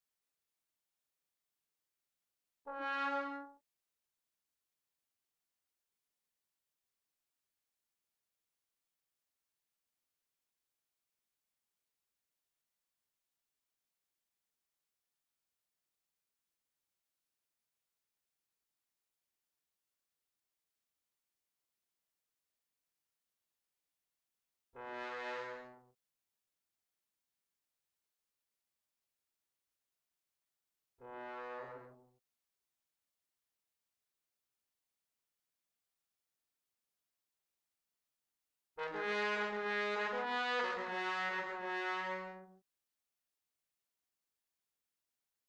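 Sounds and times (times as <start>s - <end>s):
trombone: 2.7s - 3.6s, 24.8s - 25.8s, 31.0s - 32.0s, 38.8s - 42.4s.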